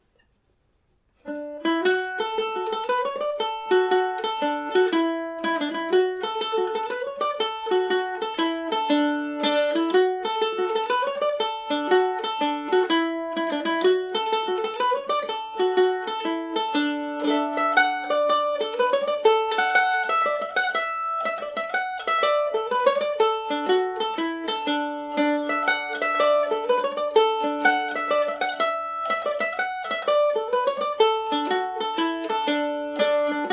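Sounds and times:
Irish mandolin playing a slide: 0.0 - 33.5.

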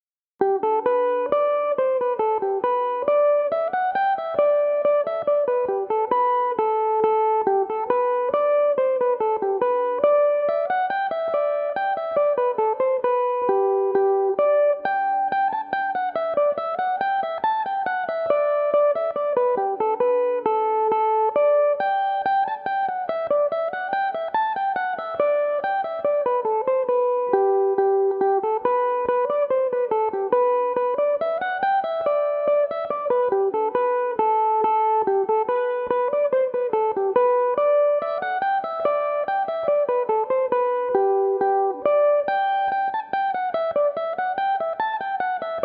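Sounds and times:
Irish mandolin in G major: 0.4 - 45.6.

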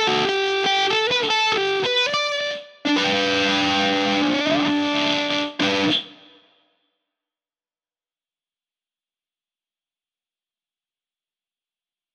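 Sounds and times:
distorted jigs on a Revelation Jaguar electric mandolin: 0.0 - 6.3.

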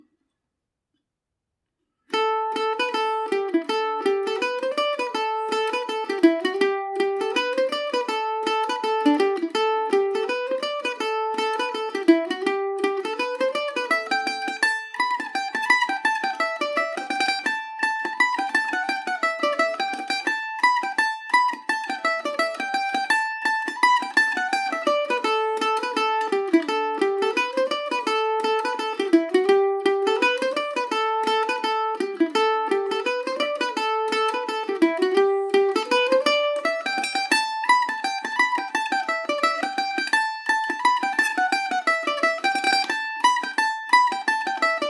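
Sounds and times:
Irish mandolin playing Paris swing in A dorian: 2.1 - 44.8.

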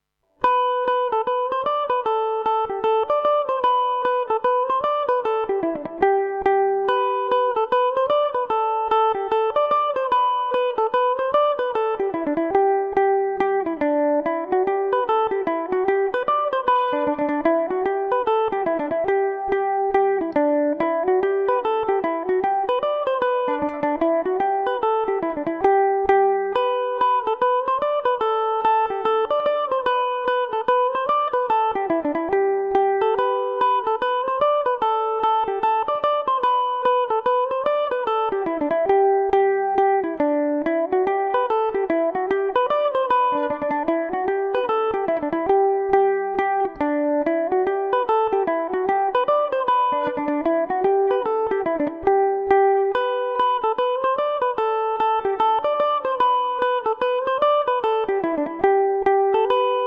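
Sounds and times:
mandolin tune in G major: 0.0 - 59.8.

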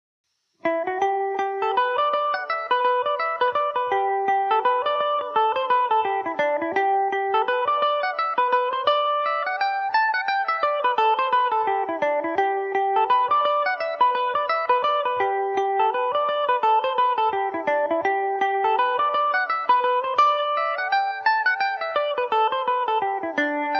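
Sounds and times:
Irish mandolin in G major: 0.6 - 23.7.

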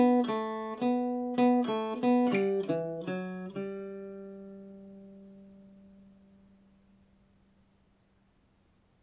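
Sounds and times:
Irish mandolin in E dorian: 0.0 - 6.5.

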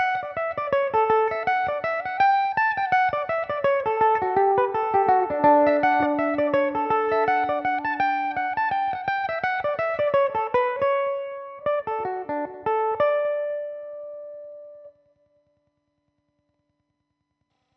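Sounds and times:
Irish mandolin playing a reel in D major: 0.1 - 13.8.

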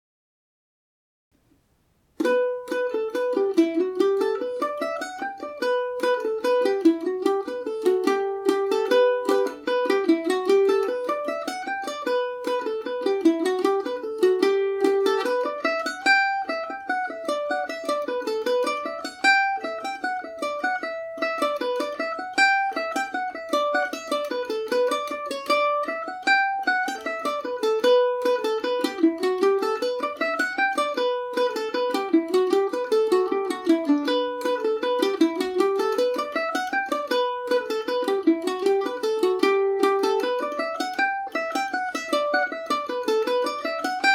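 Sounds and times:
Irish mandolin playing E Dorian Paris swing: 1.4 - 44.1.

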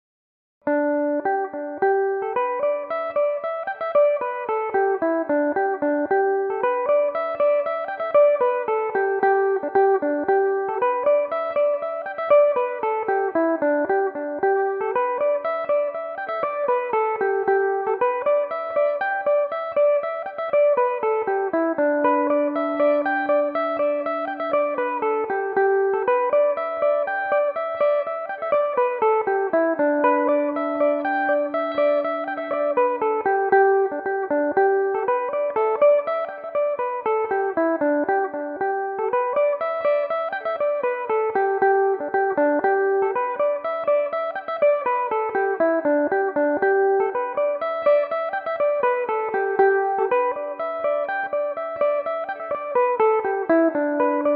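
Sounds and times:
Irish mandolin playing a polka in G major: 0.8 - 54.3.

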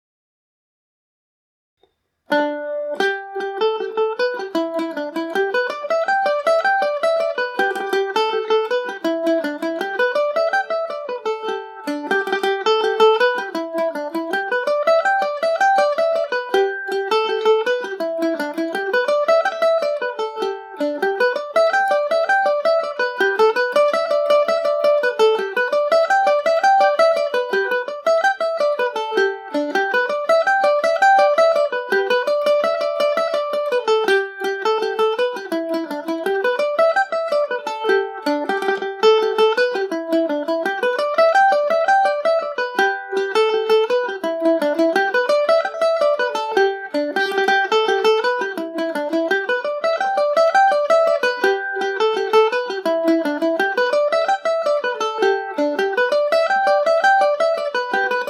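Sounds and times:
Irish mandolin in G major: 1.8 - 58.2.

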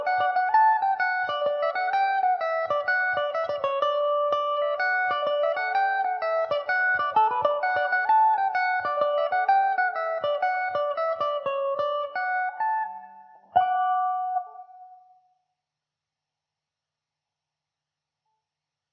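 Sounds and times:
Irish mandolin playing a jig in D major: 0.0 - 15.0.

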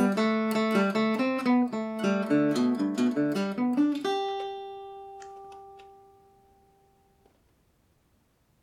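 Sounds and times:
Irish mandolin playing a reel in G major: 0.0 - 6.2.

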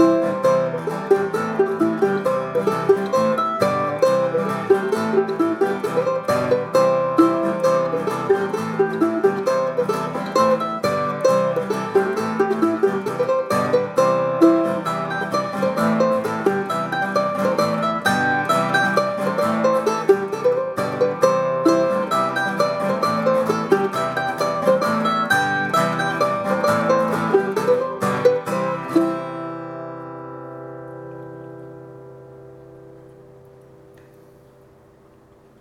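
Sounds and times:
polkas with guitar and Irish mandolin: 0.0 - 35.5.

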